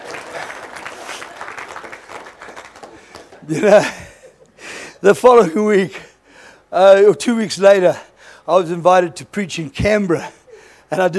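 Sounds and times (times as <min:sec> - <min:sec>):
crowd audience applause: 0:00.0 - 0:03.9
laughter: 0:02.9 - 0:04.6
speech: 0:03.4 - 0:04.0, 0:05.0 - 0:06.0, 0:06.7 - 0:11.1.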